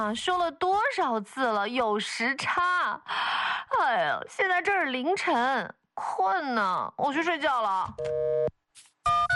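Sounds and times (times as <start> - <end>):
speech: 0.0 - 9.2
electronic telephone ringtone: 8.0 - 8.5.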